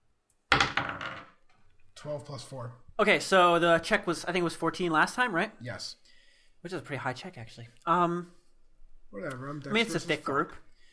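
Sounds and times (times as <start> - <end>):
dice rolled onto a wooden table: 0.5 - 1.4
speech: 2.0 - 8.4, 9.1 - 10.7.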